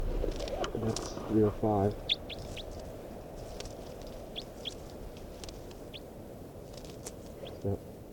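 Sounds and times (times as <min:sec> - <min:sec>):
low rumbling hiss: 0:00.0 - 0:08.1
speech: 0:00.8 - 0:02.1, 0:07.6 - 0:07.9
captive bird chirping: 0:01.9 - 0:02.8, 0:04.3 - 0:04.8.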